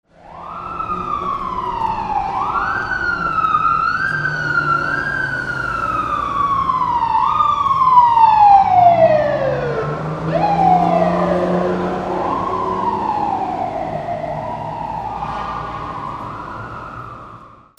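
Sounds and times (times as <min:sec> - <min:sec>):
vehicles: 0:00.1 - 0:17.7.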